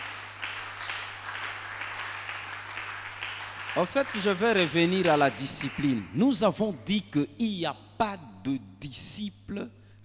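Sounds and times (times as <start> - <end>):
congregation applauding in church: 0.0 - 6.2
speech: 3.8 - 10.0.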